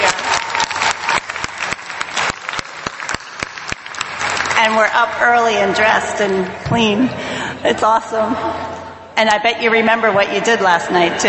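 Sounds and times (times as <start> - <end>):
audience applause: 0.0 - 6.6
speech: 4.6 - 11.2.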